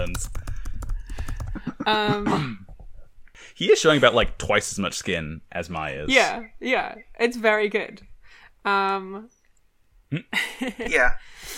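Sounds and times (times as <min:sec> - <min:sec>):
typing on a computer keyboard: 0:00.0 - 0:01.6
speech: 0:00.1 - 0:00.4, 0:01.8 - 0:02.6, 0:03.4 - 0:09.4, 0:10.1 - 0:11.5.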